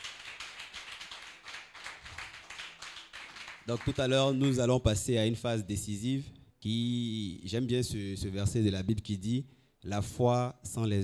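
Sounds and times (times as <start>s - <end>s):
audience clapping rhythmically: 0.0s - 4.7s
speech: 3.7s - 11.0s.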